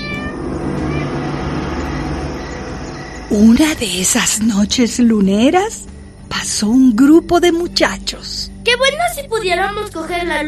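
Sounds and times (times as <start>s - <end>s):
cat yowling in a courting caterwaul: 0.0s - 2.6s
low rumble: 0.0s - 6.4s
speech: 3.3s - 10.4s.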